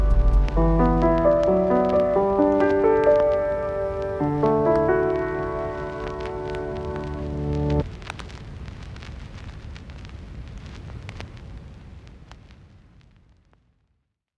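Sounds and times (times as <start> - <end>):
lofi instrumental music: 0.0 - 7.8.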